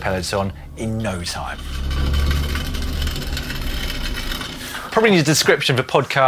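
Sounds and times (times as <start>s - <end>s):
speech: 0.0s - 2.2s, 5.0s - 6.2s
mountain bike ridden on a bare rear rim without a tyre in Cairns, Australia: 0.0s - 5.8s.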